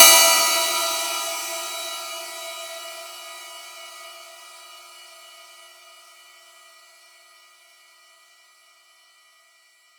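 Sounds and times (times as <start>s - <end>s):
cymbal: 0.0s - 6.4s.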